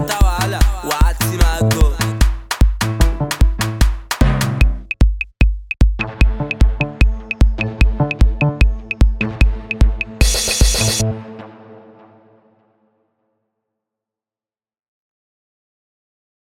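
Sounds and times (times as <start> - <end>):
street banger beat: 0.0 - 11.1.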